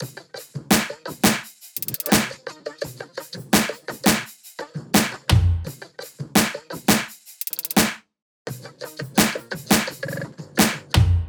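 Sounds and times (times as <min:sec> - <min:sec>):
music loop: 0:00.7 - 0:02.4, 0:03.6 - 0:04.4, 0:05.0 - 0:05.7, 0:06.4 - 0:08.0, 0:09.2 - 0:09.9.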